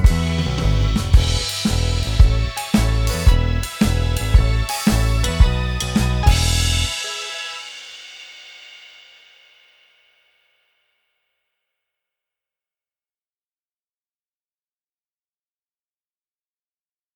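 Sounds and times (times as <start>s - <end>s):
instrumental music: 0.0s - 9.9s.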